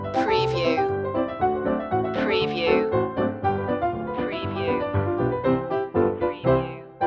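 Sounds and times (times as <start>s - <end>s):
old saloon music loop: 0.2s - 1.0s, 2.2s - 6.9s.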